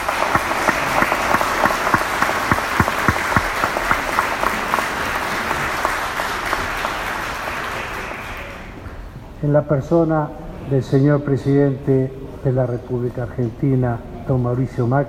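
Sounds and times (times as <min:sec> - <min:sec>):
audience giving loud applause: 0:00.0 - 0:08.8
speech: 0:09.4 - 0:15.0.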